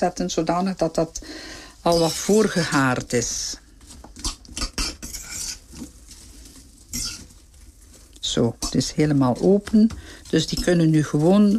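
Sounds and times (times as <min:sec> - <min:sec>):
speech: 0:00.0 - 0:03.6, 0:08.3 - 0:11.5
apples being spread out in a pan: 0:00.0 - 0:11.5.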